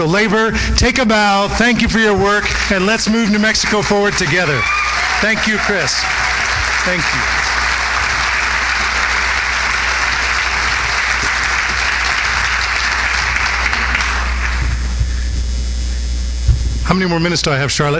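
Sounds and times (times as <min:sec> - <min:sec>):
speech: 0:00.0 - 0:07.4, 0:16.9 - 0:17.9
low electrical hum: 0:00.0 - 0:17.9
crowd applause: 0:01.7 - 0:15.0.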